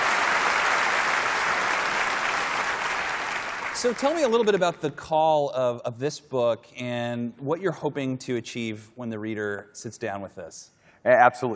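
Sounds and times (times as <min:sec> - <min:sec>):
audience applause welcoming a guest author to the stage: 0:00.0 - 0:04.8
speech: 0:03.8 - 0:11.5.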